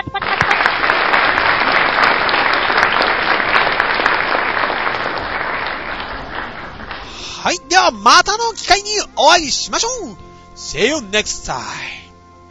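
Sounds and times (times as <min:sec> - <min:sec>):
audience applause: 0:00.0 - 0:08.5
speech: 0:07.4 - 0:12.0.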